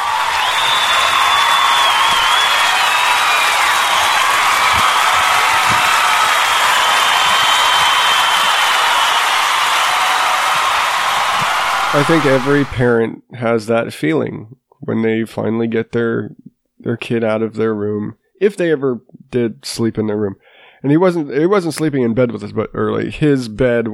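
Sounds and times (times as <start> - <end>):
applause: 0.0 - 12.9
speech: 12.0 - 23.9.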